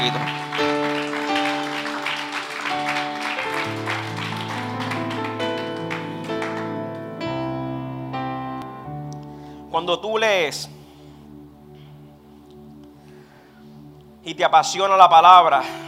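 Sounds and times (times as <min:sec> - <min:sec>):
speech: 0:00.0 - 0:00.4, 0:09.8 - 0:10.8, 0:14.3 - 0:15.8
crowd clapping: 0:00.0 - 0:07.2
sustained keyboard chords: 0:00.0 - 0:15.8.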